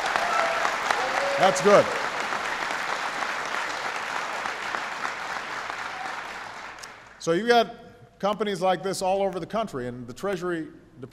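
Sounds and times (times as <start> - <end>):
audience applause: 0.0 - 7.2
speech: 1.4 - 2.0, 7.2 - 11.1.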